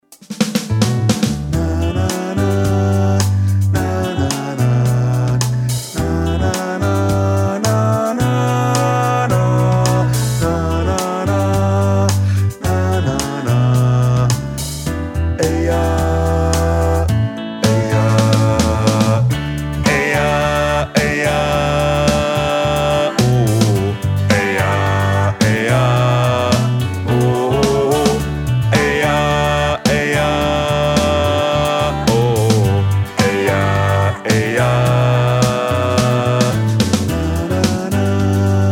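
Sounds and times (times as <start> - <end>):
bass: 0.6 - 38.6.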